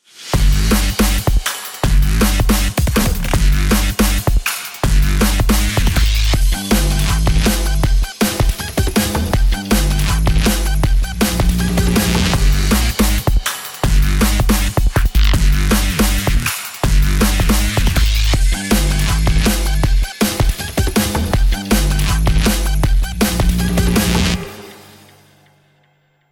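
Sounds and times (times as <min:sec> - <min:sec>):
action music: 0:00.3 - 0:25.9.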